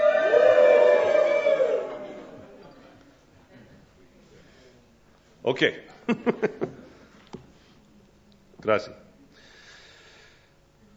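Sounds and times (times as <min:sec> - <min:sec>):
audience cheering: 0:00.0 - 0:02.6
speech: 0:05.5 - 0:06.9, 0:08.6 - 0:09.0.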